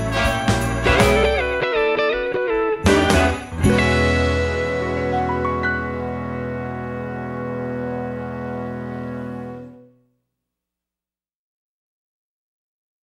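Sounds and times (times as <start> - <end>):
Christmas song: 0.0 - 10.0.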